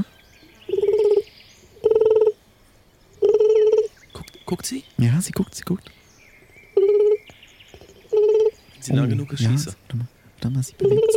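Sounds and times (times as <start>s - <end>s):
person imitating wood pigeon chick call with cooing hoots: 0.7s - 1.2s, 1.8s - 2.4s, 3.2s - 4.4s, 6.8s - 7.3s, 8.1s - 9.0s, 10.8s - 11.1s
speech: 4.5s - 6.0s, 8.8s - 11.1s.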